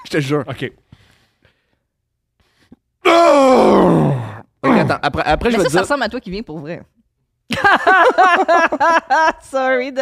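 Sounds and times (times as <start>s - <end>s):
speech: 0.1s - 0.9s, 3.2s - 10.0s
human voice imitating a grunting, puffing groan: 3.0s - 5.0s.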